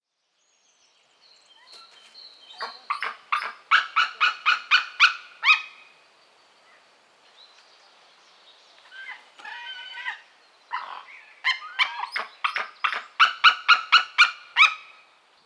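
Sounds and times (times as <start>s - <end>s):
white-tailed eagle yelping calls: 2.6s - 5.9s, 8.9s - 15.0s.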